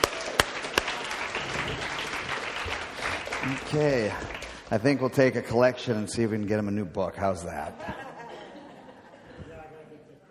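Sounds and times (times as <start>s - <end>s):
audience applause: 0.0s - 4.9s
speech: 3.4s - 8.0s
laughter: 7.6s - 10.0s.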